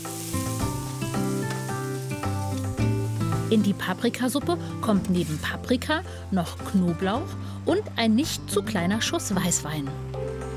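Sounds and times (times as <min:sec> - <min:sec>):
onions sweating and sizzling in a pan: 0:00.0 - 0:06.8
speech: 0:03.5 - 0:10.1.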